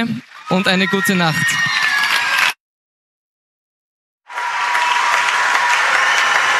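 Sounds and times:
speech: 0:00.0 - 0:01.8
audience applause: 0:00.0 - 0:02.6, 0:04.3 - 0:06.5.

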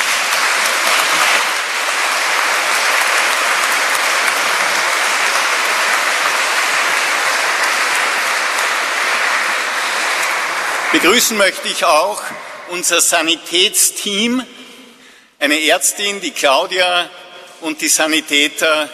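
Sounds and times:
audience applauding in a church in Maria Tafel: 0:00.0 - 0:12.8
speech: 0:11.0 - 0:14.6, 0:15.4 - 0:18.9.

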